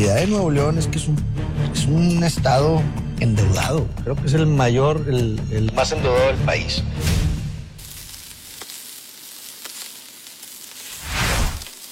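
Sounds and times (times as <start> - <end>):
speech: 0.0 - 7.2
meat sizzling on a grill: 7.0 - 11.9.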